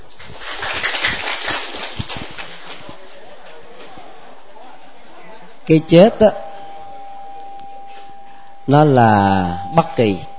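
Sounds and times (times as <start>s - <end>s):
crowd applause: 0.3s - 3.9s
speech: 5.7s - 6.4s, 8.7s - 10.3s.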